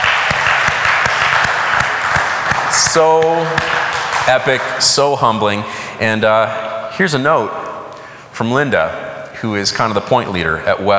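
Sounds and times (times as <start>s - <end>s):
audience clapping: 0.0s - 5.3s
speech: 2.7s - 7.6s, 8.4s - 10.9s.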